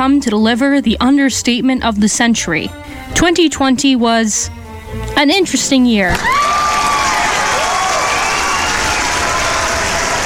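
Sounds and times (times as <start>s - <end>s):
speech: 0.0s - 6.6s
applause: 6.2s - 10.2s.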